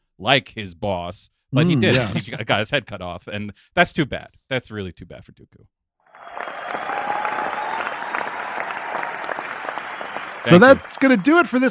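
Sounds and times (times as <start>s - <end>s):
speech: 0.2s - 6.8s, 10.4s - 11.6s
studio audience applauding: 6.1s - 11.6s.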